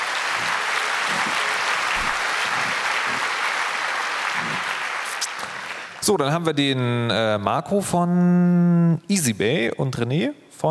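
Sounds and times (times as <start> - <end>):
murmur of voices: 0.0 - 5.7
audience applause: 0.0 - 6.2
speech: 6.1 - 10.6.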